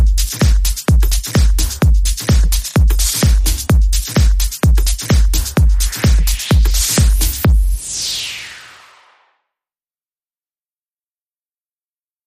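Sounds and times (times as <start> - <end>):
music beat: 0.0 - 8.3.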